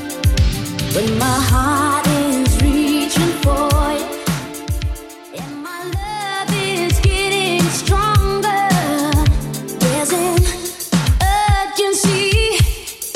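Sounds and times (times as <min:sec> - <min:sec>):
80s Redrum drum machine beat at 108 bpm: 0:00.0 - 0:13.1.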